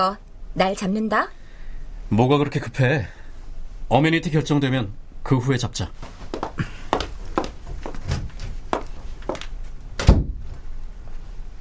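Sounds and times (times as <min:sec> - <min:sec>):
speech: 0:00.0 - 0:01.4, 0:02.1 - 0:03.2, 0:03.9 - 0:06.7
soft knocks and shuffling: 0:06.0 - 0:09.8
door closing: 0:07.7 - 0:08.6, 0:10.0 - 0:10.6.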